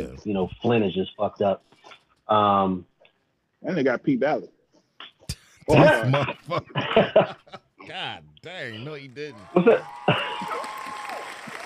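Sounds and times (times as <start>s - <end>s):
speech: 0.2s - 2.9s, 3.6s - 4.6s, 5.6s - 10.7s
laughter: 5.6s - 11.0s
audience applause: 7.9s - 11.6s.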